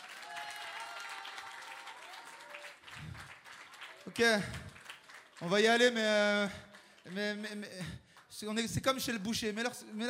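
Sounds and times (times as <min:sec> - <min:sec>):
audience applause: 0:00.0 - 0:07.2
speech: 0:04.1 - 0:04.6, 0:05.4 - 0:10.0.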